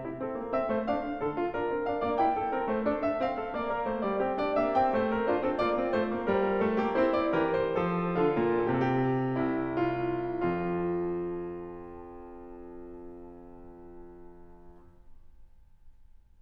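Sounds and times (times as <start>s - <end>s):
symphonic music: 0.0s - 10.8s.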